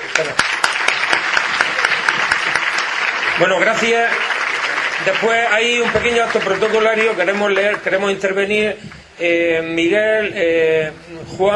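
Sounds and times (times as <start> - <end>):
applause for the band: 0.0 - 8.3
speech: 0.2 - 0.6, 3.4 - 4.3, 5.0 - 11.5.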